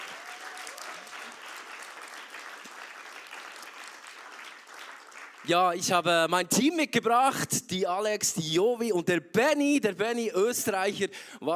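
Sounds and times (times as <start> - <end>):
audience applause: 0.0 - 5.8
speech: 5.4 - 11.5.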